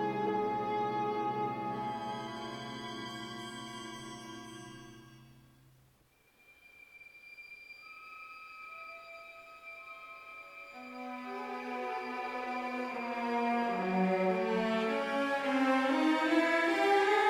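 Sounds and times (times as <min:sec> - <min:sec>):
orchestra playing variations: 0:00.0 - 0:04.7, 0:10.9 - 0:17.2.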